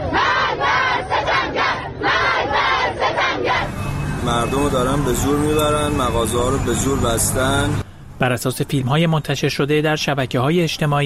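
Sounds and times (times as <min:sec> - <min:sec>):
protesters chanting slogans in the street: 0:00.0 - 0:05.8
speech: 0:04.2 - 0:11.0.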